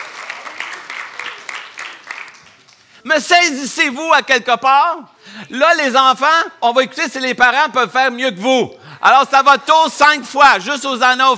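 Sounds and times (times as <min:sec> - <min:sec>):
audience applause: 0:00.0 - 0:02.9
speech: 0:03.0 - 0:11.3.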